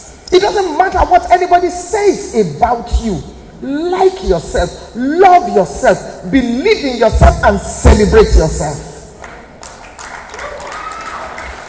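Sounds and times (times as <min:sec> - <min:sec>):
speech: 0:00.4 - 0:08.9
audience clapping: 0:09.2 - 0:11.6
crowd cheering: 0:09.7 - 0:11.6.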